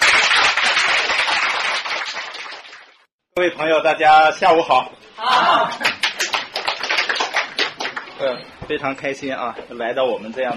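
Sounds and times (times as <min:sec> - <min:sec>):
audience applause: 0:00.0 - 0:02.9, 0:05.8 - 0:08.0
speech: 0:03.4 - 0:06.0, 0:08.2 - 0:10.5.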